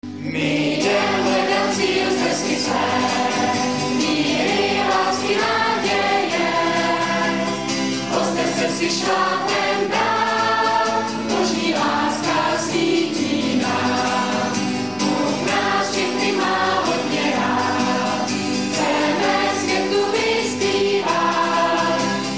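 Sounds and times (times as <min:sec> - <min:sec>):
hymn: 0:00.1 - 0:22.3.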